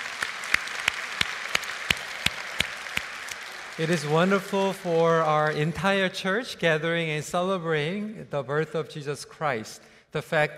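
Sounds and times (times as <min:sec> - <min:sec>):
audience applause: 0:00.0 - 0:05.9
speech: 0:03.8 - 0:10.5.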